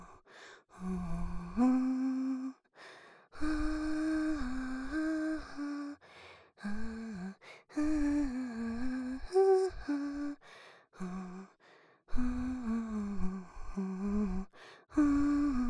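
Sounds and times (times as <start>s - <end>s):
person humming: 0.8s - 2.6s, 3.4s - 6.0s, 6.6s - 10.4s, 11.0s - 11.5s, 12.2s - 15.6s.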